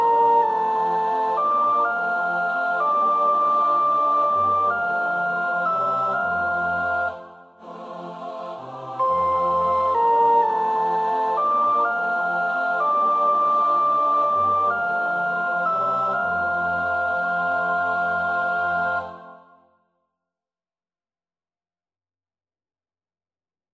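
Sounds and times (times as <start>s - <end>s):
first soprano singing: 0.0s - 19.5s.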